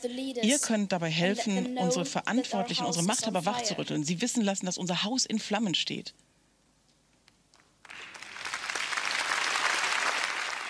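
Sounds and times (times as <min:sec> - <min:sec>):
speech: 0:00.0 - 0:06.3
large audience clapping in a standing ovation: 0:07.5 - 0:10.6.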